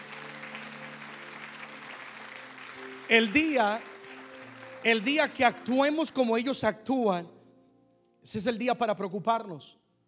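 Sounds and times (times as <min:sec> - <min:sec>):
audience clapping loudly: 0:00.0 - 0:06.3
speech: 0:03.1 - 0:03.9, 0:04.8 - 0:07.4, 0:08.2 - 0:09.8.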